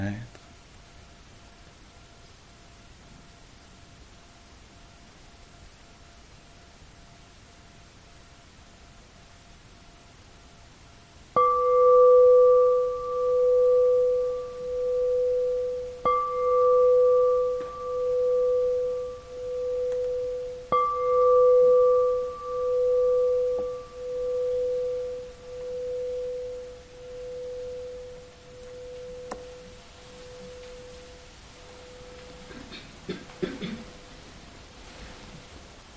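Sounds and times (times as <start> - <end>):
meditation bell ringing: 11.4 - 32.6.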